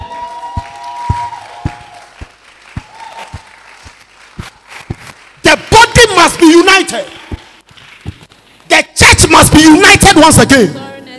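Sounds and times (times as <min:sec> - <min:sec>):
audience applause: 0:00.0 - 0:08.1
speech: 0:06.4 - 0:07.2, 0:09.6 - 0:10.8.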